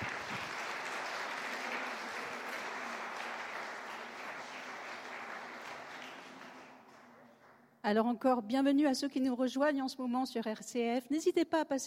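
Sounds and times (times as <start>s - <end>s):
audience applauding: 0.0s - 7.6s
speech: 7.8s - 11.8s.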